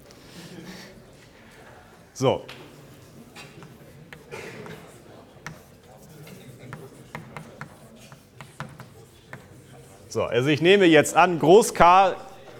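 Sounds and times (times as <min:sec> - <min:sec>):
speech: 0:02.2 - 0:02.6, 0:10.2 - 0:12.3
letters K being written on a board during a lecture: 0:02.8 - 0:10.1.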